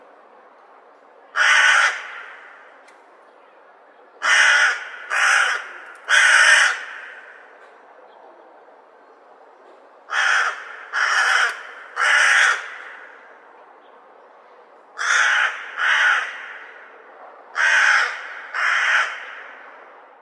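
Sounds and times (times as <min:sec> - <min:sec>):
crow calls: 0:01.4 - 0:02.6, 0:04.2 - 0:07.7, 0:10.1 - 0:13.3, 0:15.0 - 0:19.7.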